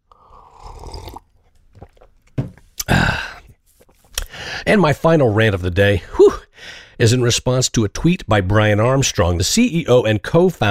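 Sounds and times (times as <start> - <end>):
slurping tea: 0.0 - 4.3
speech: 4.7 - 6.4, 7.0 - 10.7.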